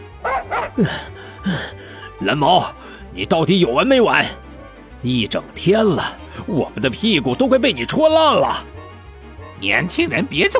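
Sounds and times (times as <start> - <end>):
pack of stray dogs barking: 0.0 - 1.3
speech: 0.8 - 4.4, 5.0 - 8.7, 9.6 - 10.5.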